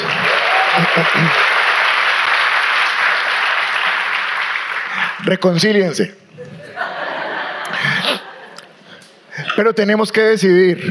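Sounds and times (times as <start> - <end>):
laughter: 0.0 - 1.6, 6.4 - 8.7
audience applause: 0.0 - 5.2
speech: 0.8 - 1.5, 5.2 - 6.2, 9.6 - 10.8.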